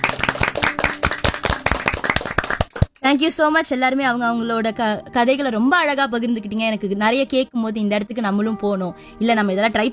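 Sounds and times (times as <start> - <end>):
group clapping hands: 0.0 - 3.0
speech: 3.0 - 9.9.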